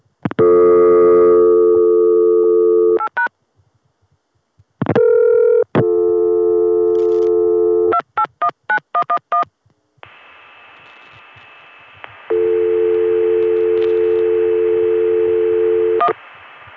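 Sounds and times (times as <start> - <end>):
telephone dial tone from a Richmond No. 1 ESS office: 0.4 - 3.2, 4.9 - 8.0, 12.3 - 16.1.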